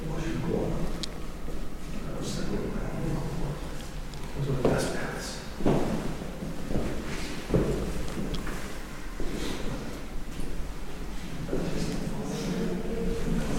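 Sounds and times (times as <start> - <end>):
murmur of hushed voices in York Minster cathedral: 0.0 - 13.5
footsteps ringing out in York Minster cathedral: 5.6 - 11.9.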